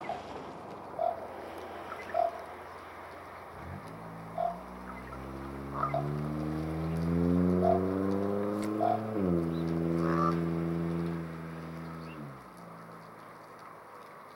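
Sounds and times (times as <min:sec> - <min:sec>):
two ravens calling with hoarse croaks: 0:01.0 - 0:11.2.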